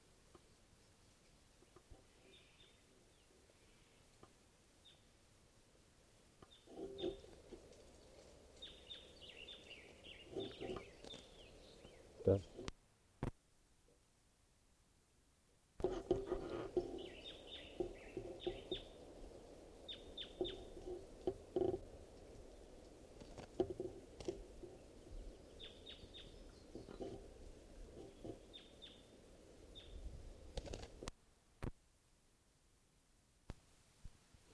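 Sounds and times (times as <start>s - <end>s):
hiss: 0.0s - 34.5s
wild birds chirping: 0.3s - 5.1s, 6.4s - 12.7s, 16.0s - 23.0s, 23.6s - 30.1s
speech: 12.3s - 12.6s.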